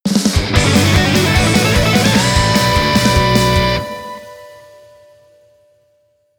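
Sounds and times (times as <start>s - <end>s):
stage clear jingle: 0.6s - 5.4s.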